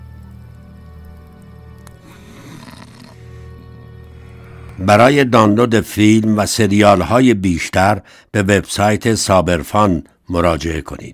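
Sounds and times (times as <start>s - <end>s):
man snoring in his sleep: 2.0s - 4.9s
speech: 4.8s - 11.1s.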